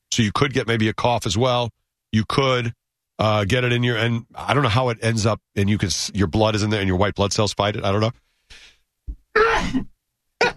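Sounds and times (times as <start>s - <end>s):
speech: 0.2s - 8.7s, 9.6s - 10.5s
sneeze: 9.4s - 9.9s.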